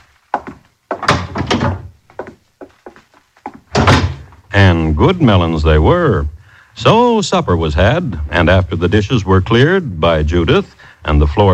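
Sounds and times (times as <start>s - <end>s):
door being opened with heavy thunks and clunks: 0.5s - 2.4s, 3.6s - 4.4s
speech: 4.6s - 11.5s.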